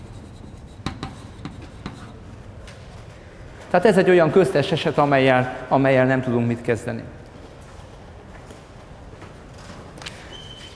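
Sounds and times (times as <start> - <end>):
pen or chalk writing on a board during a mathematics lecture: 0.0 - 2.2
speech: 3.7 - 7.2.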